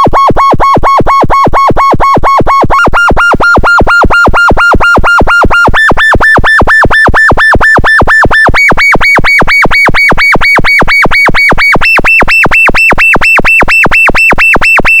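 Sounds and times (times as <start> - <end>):
tone generator tone: 0.0 - 14.9.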